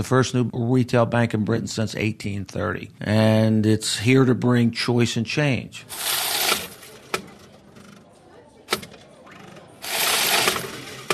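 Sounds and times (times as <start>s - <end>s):
speech: 0.0s - 6.2s
coin-counting machine running: 5.9s - 7.0s, 9.8s - 11.1s.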